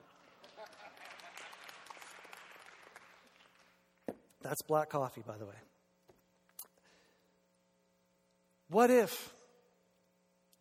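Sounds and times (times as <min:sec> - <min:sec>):
audience clapping: 0:00.0 - 0:04.0
speech: 0:04.4 - 0:05.7, 0:08.7 - 0:09.4.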